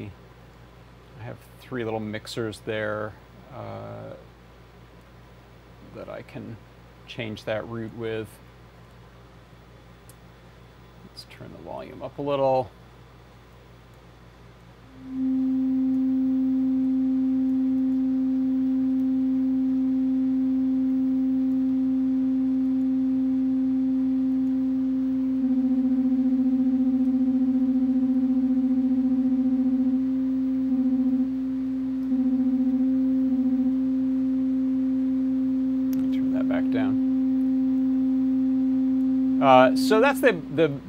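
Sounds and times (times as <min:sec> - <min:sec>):
speech: 0:00.0 - 0:00.2, 0:01.2 - 0:04.3, 0:05.9 - 0:08.4, 0:11.2 - 0:12.8, 0:39.9 - 0:40.8
synthesizer notes played from a computer keyboard acting as MIDI keyboard: 0:14.9 - 0:40.8.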